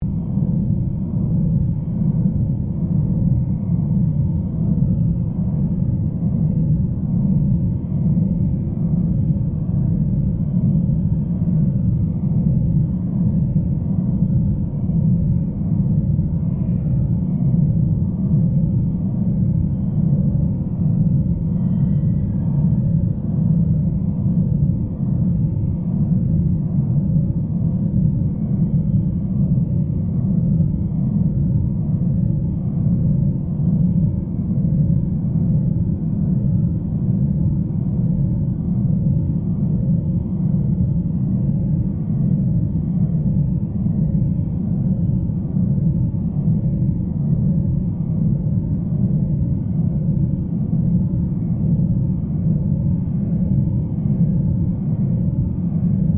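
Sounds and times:
created drone sound: 0:00.0 - 0:56.1.

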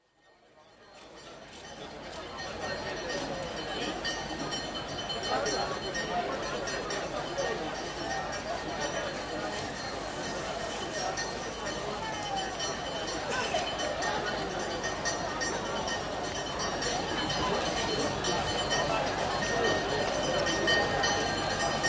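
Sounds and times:
bells in Niamey, Niger: 0:00.0 - 0:21.8
market atmosphere in Niamey, Niger: 0:00.0 - 0:21.8.

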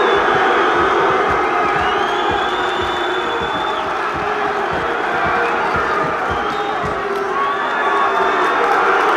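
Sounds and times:
rowdy crowd booing: 0:00.0 - 0:09.1.

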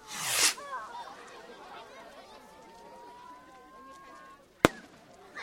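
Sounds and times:
fireworks exploding: 0:00.1 - 0:00.6, 0:04.6 - 0:05.4.

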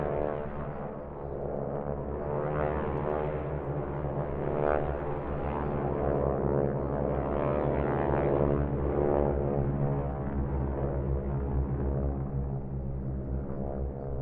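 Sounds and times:
distant Harvard aircraft squadron passing: 0:00.0 - 0:14.2.

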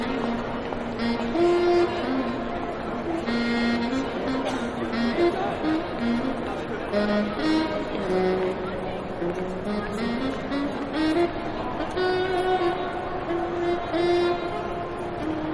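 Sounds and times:
train station ambience: 0:00.0 - 0:15.5.

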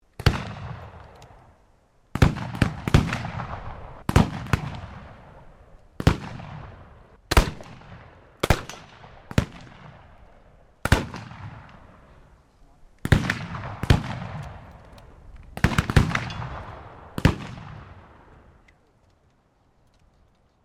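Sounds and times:
black powder musket gunline volleys at a shooting range: 0:00.2 - 0:01.2, 0:02.1 - 0:10.2, 0:10.8 - 0:12.1, 0:13.0 - 0:14.8, 0:15.6 - 0:18.3.

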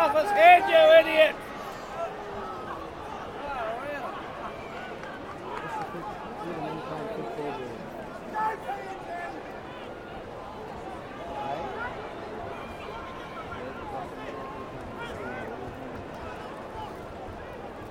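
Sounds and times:
rugby crowd at a World Cup rugby match: 0:00.0 - 0:17.8.

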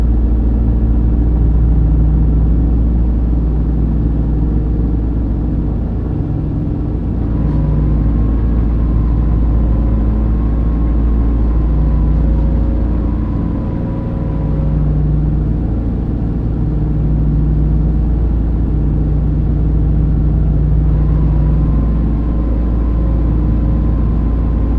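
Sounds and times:
Lockheed L-1049 Super Constellation taking off heard from the interior: 0:00.0 - 0:24.7.

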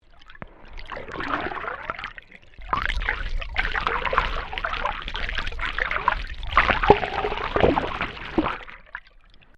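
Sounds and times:
water moving through water in a domestic pool: 0:00.0 - 0:09.5.

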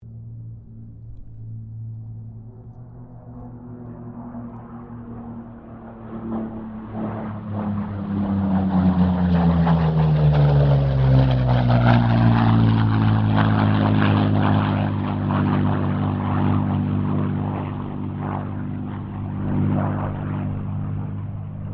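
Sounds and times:
P-40 Kittyhawk aircraft passing: 0:00.0 - 0:21.7.

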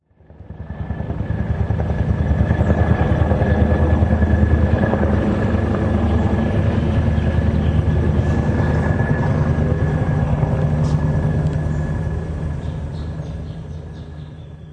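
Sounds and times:
distant Pentagon helicopter flying over: 0:00.0 - 0:14.7
bird: 0:12.6 - 0:14.7.

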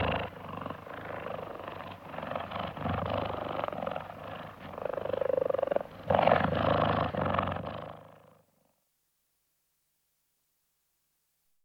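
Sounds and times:
several cheetahs purring: 0:00.0 - 0:08.8.

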